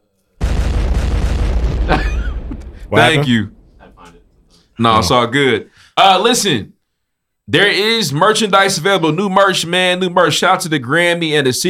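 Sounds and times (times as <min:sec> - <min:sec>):
DJ bomb-drop effect roaring rumble: 0:00.4 - 0:05.2
DJ bomb-drop effect heavy boom: 0:00.4 - 0:05.4
speech: 0:01.9 - 0:02.1, 0:02.9 - 0:04.2, 0:04.8 - 0:06.7, 0:07.5 - 0:11.6.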